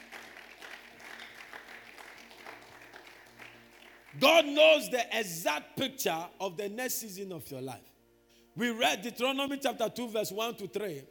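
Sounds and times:
audience clapping: 0.0 - 4.5
speech: 4.2 - 7.9, 8.6 - 11.0.

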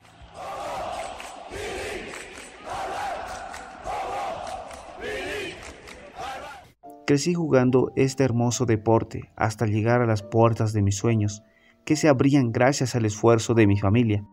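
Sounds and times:
stadium crowd shouting celebrating a goal: 0.0 - 6.8
speech: 7.1 - 14.3.

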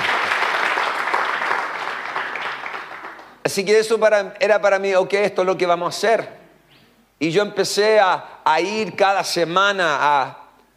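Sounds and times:
applause: 0.0 - 3.4
speech: 3.5 - 6.4, 7.2 - 10.4.

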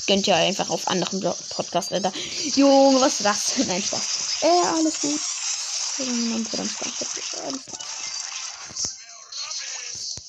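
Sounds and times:
speech: 0.0 - 5.4, 6.0 - 8.0, 8.7 - 9.0
neighbour's vacuum cleaner running: 0.8 - 7.7
laughter: 2.1 - 2.6.

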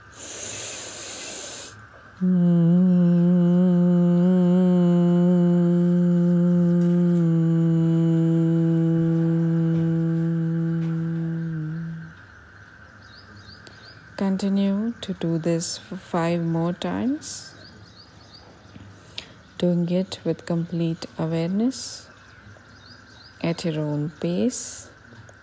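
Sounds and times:
breathy inhale during Bhramari pranayama: 0.0 - 1.8
humming breath exhalation during Bhramari pranayama: 0.0 - 12.3
speech: 2.2 - 2.6, 14.4 - 17.6, 19.6 - 22.1, 23.4 - 24.9.

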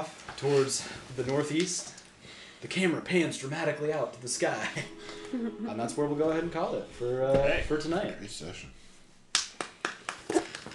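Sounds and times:
speech: 0.0 - 2.0, 2.6 - 8.8
person clapping hands: 9.3 - 10.7.

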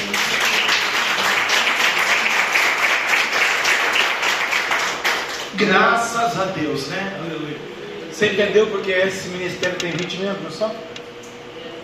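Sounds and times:
audience clapping: 0.0 - 5.6
speech: 5.6 - 10.9.

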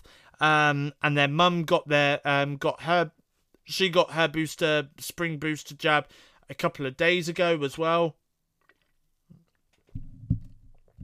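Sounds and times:
speech: 0.4 - 8.2
person sipping and gulping a drink: 8.6 - 9.9
soft low thump: 9.9 - 11.0.

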